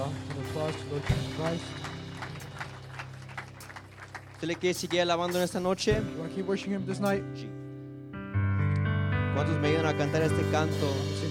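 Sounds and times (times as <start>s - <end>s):
audience applause: 0.0s - 5.6s
speech: 0.6s - 1.9s, 4.4s - 7.6s, 9.4s - 11.2s.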